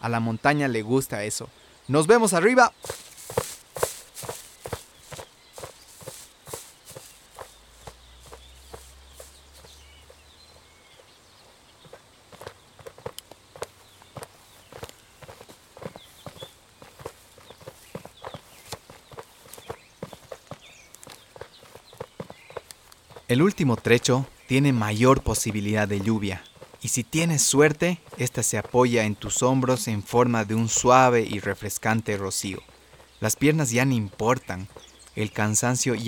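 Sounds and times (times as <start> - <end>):
speech: 0.0 - 3.4, 23.3 - 36.0
boots crunching on earth trail: 2.6 - 11.2, 11.8 - 30.2.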